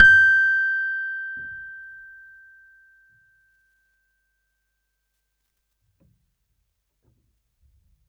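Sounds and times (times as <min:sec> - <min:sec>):
valved instrument note G5: 0:00.0 - 0:01.8.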